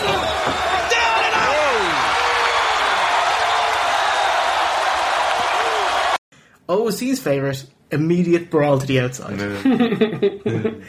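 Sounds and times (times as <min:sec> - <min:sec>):
wrestling crowd cheering: 0:00.0 - 0:06.2
speech: 0:06.7 - 0:10.8
laughter: 0:09.5 - 0:10.8.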